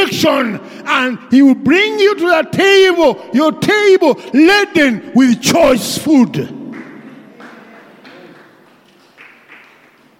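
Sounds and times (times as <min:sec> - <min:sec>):
speech: 0:00.1 - 0:06.6
audience clapping: 0:06.4 - 0:10.1.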